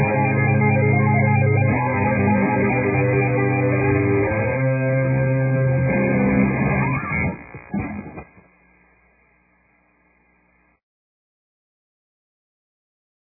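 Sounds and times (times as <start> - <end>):
guitar tapping: 0.0 - 8.5.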